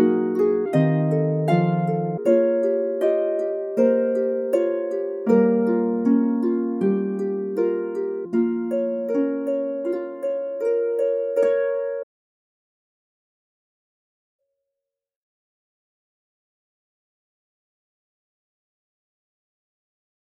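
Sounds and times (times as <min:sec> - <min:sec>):
harp playing: 0:00.0 - 0:12.1.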